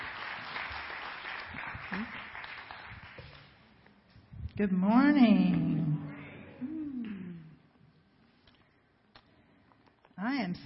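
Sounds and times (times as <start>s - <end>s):
audience clapping to welcome a guest speaker at a worship gathering: 0.0s - 3.6s
speech: 2.0s - 2.2s, 4.6s - 5.8s.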